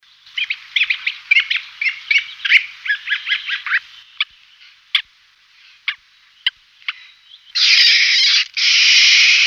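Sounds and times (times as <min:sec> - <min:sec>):
Siberian jay mewing calls: 0:00.4 - 0:04.3, 0:06.8 - 0:09.4.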